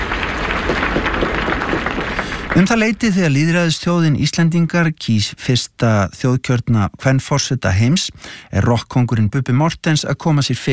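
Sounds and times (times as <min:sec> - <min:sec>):
crowd applauding and cheering Vigdís on her house balcony: 0:00.0 - 0:04.0
speech: 0:02.6 - 0:10.7.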